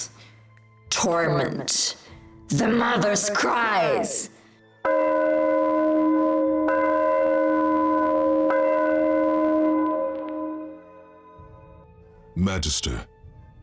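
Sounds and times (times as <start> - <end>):
speech: 1.0 - 4.4, 12.4 - 13.1
church bells ringing: 4.8 - 11.5.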